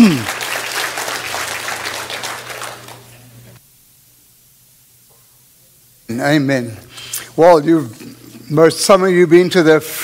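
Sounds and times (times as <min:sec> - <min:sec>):
audience clapping: 0:00.0 - 0:03.6
speech: 0:06.2 - 0:06.8, 0:07.4 - 0:10.0.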